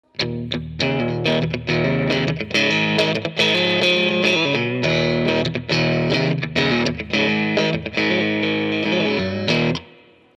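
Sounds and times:
bluesy guitar through Ampeg GVT combo amp: 0:00.0 - 0:10.3.

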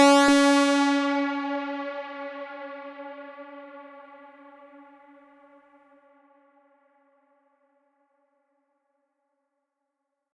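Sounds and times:
Moog Mother 32 generative synthesizer patch: 0:00.0 - 0:02.2.

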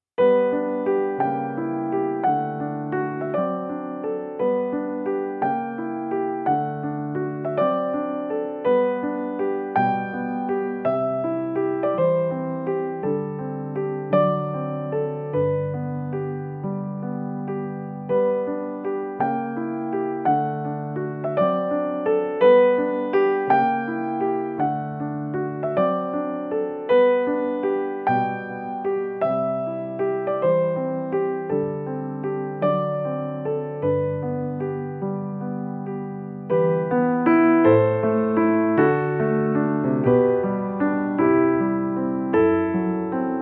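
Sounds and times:
Nord Grand Amber Upright piano: 0:00.0 - 0:43.4.

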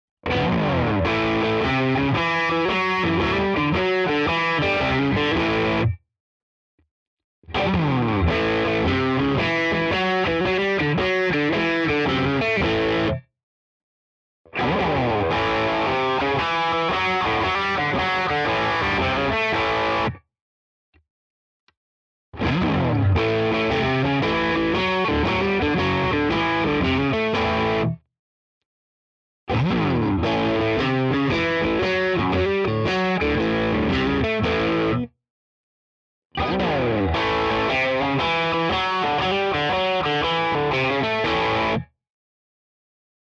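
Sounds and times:
Schecter Exotic Ziricote guitar crunch blues riff: 0:00.2 - 0:06.0, 0:07.5 - 0:13.2, 0:14.5 - 0:20.2, 0:22.4 - 0:28.0, 0:29.5 - 0:35.1, 0:36.4 - 0:41.9.

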